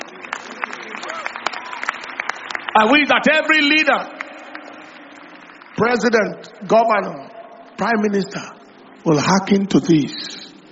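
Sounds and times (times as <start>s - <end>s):
church congregation clapping hands for the Lord: 0.0s - 7.3s
murmur of voices: 0.0s - 10.7s
speech: 2.8s - 4.2s, 5.8s - 10.3s.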